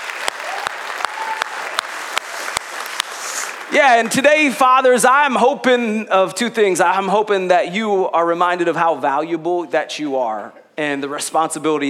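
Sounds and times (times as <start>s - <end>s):
audience applause at a Father's Day church service: 0.0s - 4.0s
speech: 3.7s - 11.8s.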